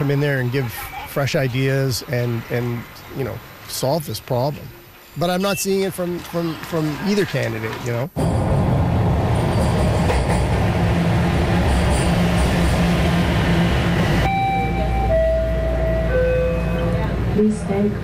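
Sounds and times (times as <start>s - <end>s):
speech: 0.0s - 8.3s, 17.8s - 18.0s
subway train roaring through a transit station: 8.2s - 18.0s.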